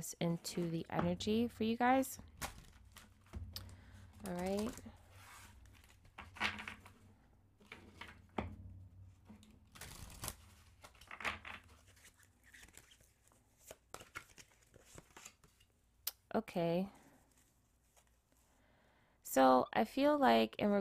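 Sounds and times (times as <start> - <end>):
speech: 0.0 - 2.4, 4.2 - 5.0, 16.5 - 17.0, 19.4 - 20.7
oracle cards being shuffled and pulled during a reading: 2.2 - 7.0, 9.7 - 15.7.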